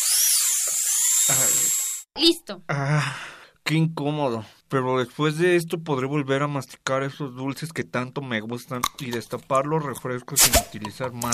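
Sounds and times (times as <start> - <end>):
dental drill whining during tooth extraction: 0.0 - 2.1
speech: 2.2 - 11.3.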